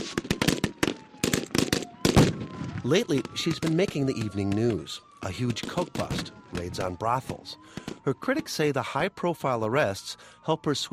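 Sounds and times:
gunshots during a mock terrorist kidnapping drill at an outdoor reviewing stand: 0.0s - 8.0s
speech: 2.8s - 10.9s.

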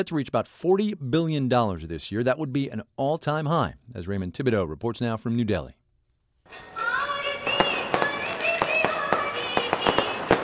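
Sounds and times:
speech: 0.0s - 5.8s, 6.5s - 6.7s
Diwali fireworks exploding: 6.5s - 10.4s.

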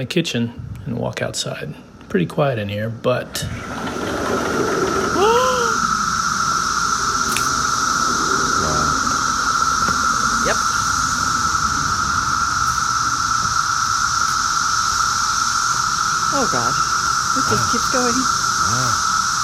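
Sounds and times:
speech: 0.0s - 4.4s, 16.4s - 18.8s
loud buzzing of cicadas outdoors: 1.0s - 19.4s.

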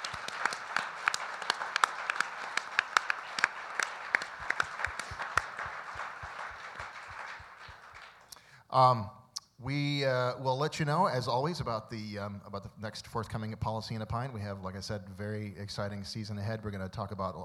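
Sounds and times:
audience applause: 0.0s - 8.3s
speech: 8.7s - 17.4s.

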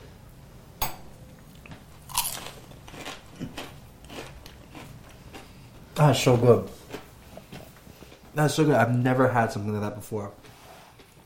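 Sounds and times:
biting into fried beef dumplings topped with sugar: 1.5s - 5.9s
speech: 6.0s - 6.8s, 8.4s - 10.5s.

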